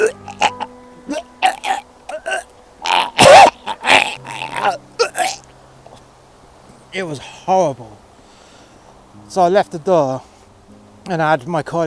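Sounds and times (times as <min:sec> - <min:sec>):
imitated retching noise: 0:00.0 - 0:05.4
speech: 0:07.0 - 0:08.0, 0:09.3 - 0:10.3, 0:11.1 - 0:11.8.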